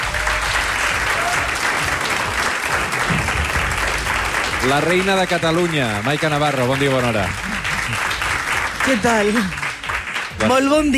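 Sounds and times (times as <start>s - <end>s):
audience applause at Palau Robert de Barcelona: 0.0s - 10.9s
speech: 4.6s - 8.1s, 8.8s - 9.6s, 10.4s - 10.9s.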